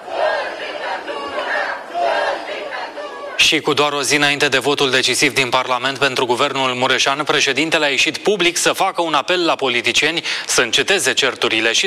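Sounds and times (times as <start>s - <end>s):
supporters of Călin Georgescu chanting outside the central detention facility: 0.0s - 3.5s
speech: 3.4s - 11.8s.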